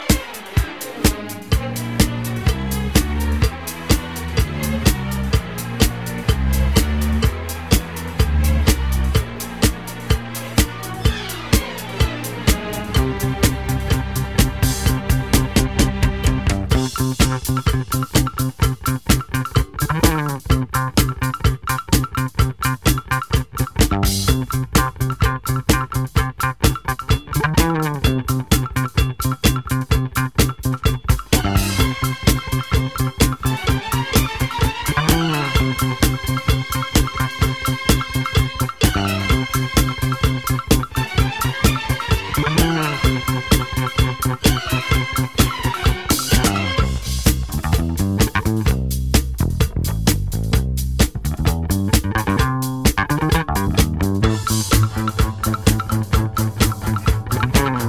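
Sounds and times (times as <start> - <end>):
disco remix music: 0.0 - 57.8.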